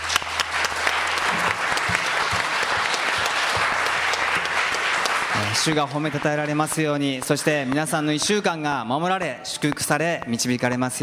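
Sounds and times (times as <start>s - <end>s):
audience applause at end of worship: 0.0s - 8.6s
speech: 5.6s - 11.0s.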